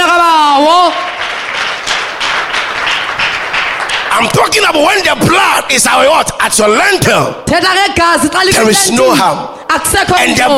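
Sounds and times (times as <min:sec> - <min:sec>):
audience clapping: 0:00.6 - 0:05.4
speech: 0:04.3 - 0:10.5.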